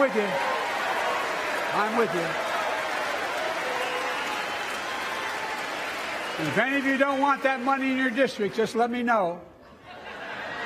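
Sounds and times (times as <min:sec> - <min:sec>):
speech: 0:00.0 - 0:00.6, 0:01.7 - 0:02.5, 0:06.4 - 0:09.5
audience cheering and applauding: 0:00.0 - 0:09.0.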